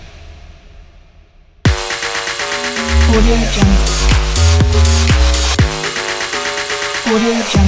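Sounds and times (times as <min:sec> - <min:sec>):
deep house logo jingle: 0:01.7 - 0:07.5.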